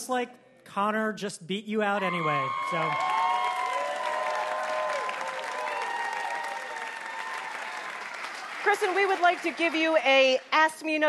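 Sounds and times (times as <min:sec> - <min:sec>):
speech: 0:00.0 - 0:03.2, 0:08.6 - 0:11.0
audience applause: 0:02.0 - 0:11.0.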